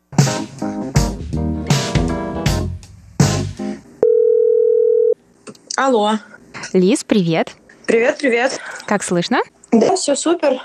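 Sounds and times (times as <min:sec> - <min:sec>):
rhythmic music: 0:00.0 - 0:03.8
telephone dial tone: 0:04.0 - 0:05.2
speech: 0:05.8 - 0:10.6.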